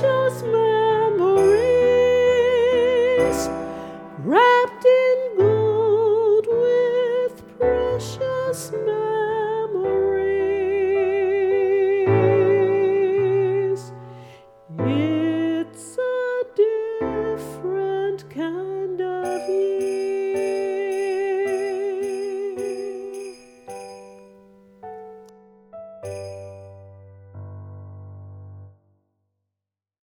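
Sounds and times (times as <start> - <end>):
sleigh bells: 0.0 - 4.9, 17.4 - 24.6, 26.0 - 26.9
solo voice singing: 0.0 - 14.1, 14.7 - 23.5
piano chords: 0.0 - 28.8.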